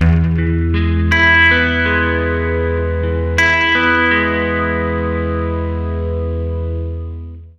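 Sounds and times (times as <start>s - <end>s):
acoustic guitar arpeggio loop in E major: 0.0s - 7.5s.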